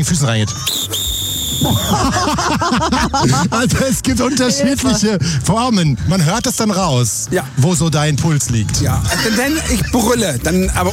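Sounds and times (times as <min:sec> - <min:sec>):
speech: 0:00.0 - 0:10.9
loud shrill whistle: 0:00.6 - 0:02.0
laughter: 0:01.5 - 0:05.5, 0:09.0 - 0:10.9.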